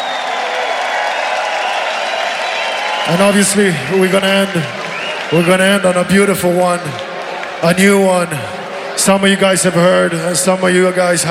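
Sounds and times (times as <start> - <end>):
concert crowd cheering and clapping: 0.0 - 11.2
speech: 3.1 - 7.0, 7.6 - 11.2.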